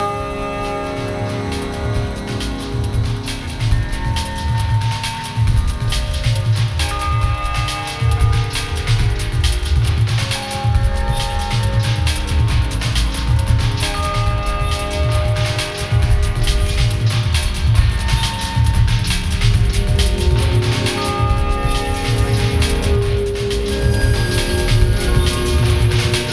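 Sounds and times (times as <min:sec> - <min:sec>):
ambient piano: 0:00.0 - 0:26.3
background drums: 0:00.0 - 0:26.3.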